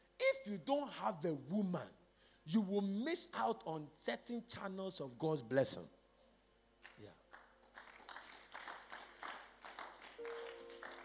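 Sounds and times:
speech: 0:00.4 - 0:06.0, 0:07.0 - 0:07.2
audience clapping in a steady rhythm: 0:06.8 - 0:11.0
sustained tone: 0:10.2 - 0:11.0.

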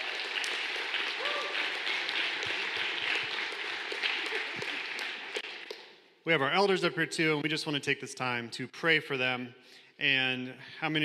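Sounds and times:
audience clapping: 0:00.0 - 0:06.0
speech: 0:06.3 - 0:11.0.

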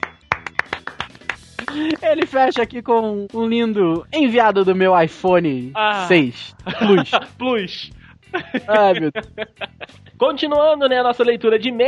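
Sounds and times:
hand clapping: 0:00.0 - 0:02.8
laughter: 0:01.6 - 0:02.6, 0:06.4 - 0:10.2
speech: 0:01.7 - 0:11.8.

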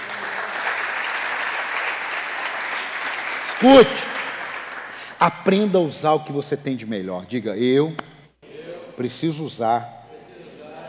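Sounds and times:
audience applause: 0:00.0 - 0:05.1
speech: 0:03.6 - 0:04.1, 0:05.2 - 0:08.0, 0:09.0 - 0:10.0.

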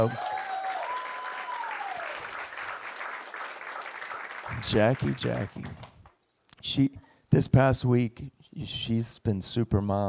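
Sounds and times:
speech: 0:00.0 - 0:00.3, 0:04.6 - 0:05.9, 0:06.6 - 0:10.0
audience clapping: 0:00.0 - 0:06.2.

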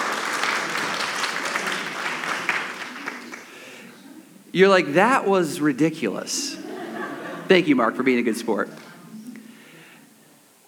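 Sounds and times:
audience applause: 0:00.0 - 0:03.8
speech: 0:04.5 - 0:06.6, 0:07.5 - 0:08.8
laughter: 0:06.3 - 0:09.4.

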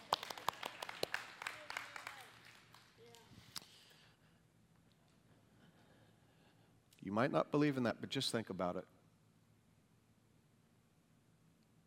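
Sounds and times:
one person clapping: 0:00.0 - 0:03.7
speech: 0:07.0 - 0:09.0.

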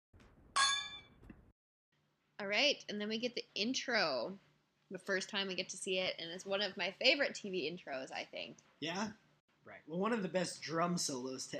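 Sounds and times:
drinking glasses clinking in a toast: 0:00.6 - 0:01.0
speech: 0:02.4 - 0:11.5.

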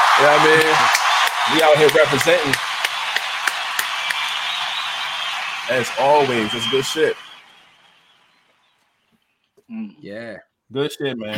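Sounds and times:
applause: 0:00.0 - 0:08.5
speech: 0:00.2 - 0:02.7, 0:05.7 - 0:07.2, 0:09.7 - 0:11.3.

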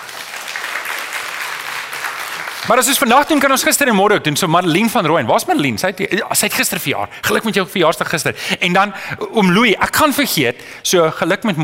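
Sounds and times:
audience applause: 0:00.0 - 0:03.5
speech: 0:02.7 - 0:11.6.

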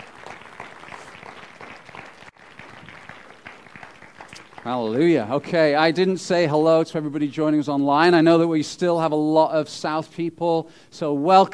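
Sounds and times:
crowd applauding: 0:00.0 - 0:05.5
speech: 0:04.6 - 0:11.5.

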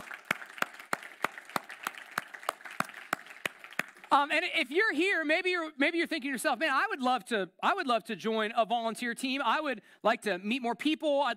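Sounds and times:
crowd applauding: 0:00.0 - 0:04.3
speech: 0:04.1 - 0:11.3.

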